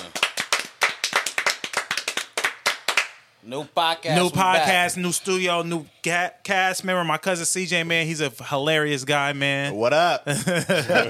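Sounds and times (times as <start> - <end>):
small group applauding themselves: 0.0 - 3.2
speech: 3.4 - 11.0
laughter: 10.3 - 11.0.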